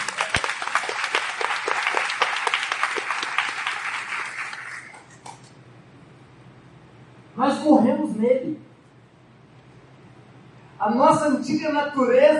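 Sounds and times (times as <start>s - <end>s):
crowd applause: 0.0s - 5.2s
speech: 7.4s - 8.6s, 10.8s - 12.3s.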